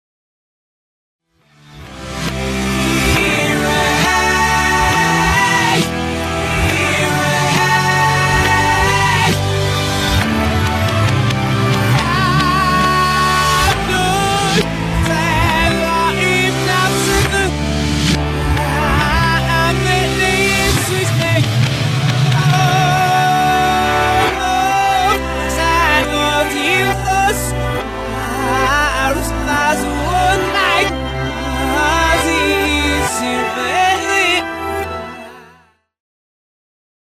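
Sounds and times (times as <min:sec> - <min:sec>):
reversed heavy metal music: 0:01.5 - 0:34.9.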